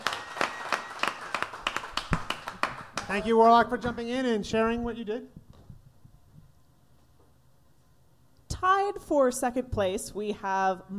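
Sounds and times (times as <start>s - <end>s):
applause: 0.0s - 3.4s
speech: 3.1s - 5.4s, 9.1s - 10.9s.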